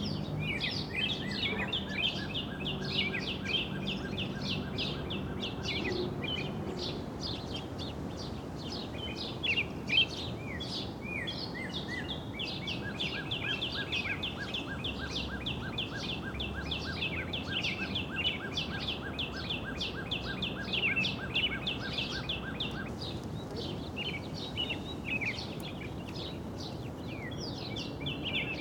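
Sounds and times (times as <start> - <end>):
birds: 0.0 - 28.5
wind in pines: 6.8 - 28.5.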